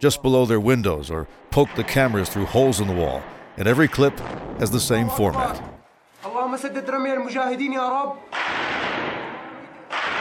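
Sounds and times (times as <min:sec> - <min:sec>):
speech: 0:00.0 - 0:09.2
gunfire: 0:01.3 - 0:05.8, 0:08.3 - 0:10.1.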